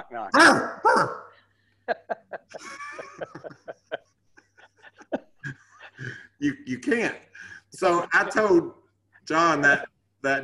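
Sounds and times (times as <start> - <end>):
speech: 0.1 - 1.2, 6.4 - 10.4
person imitating a dog barking: 0.3 - 1.3
laughter: 1.8 - 6.3, 7.8 - 8.8.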